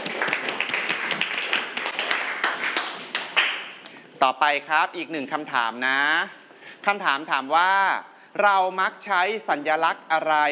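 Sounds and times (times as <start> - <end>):
classroom clapping for a classmate: 0.0 - 3.9
speech: 4.2 - 10.5.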